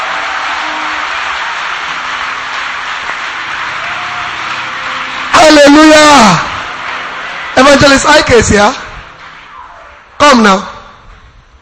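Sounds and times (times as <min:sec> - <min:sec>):
audience clapping: 0:00.0 - 0:09.6
speech: 0:07.8 - 0:08.8, 0:10.2 - 0:10.7.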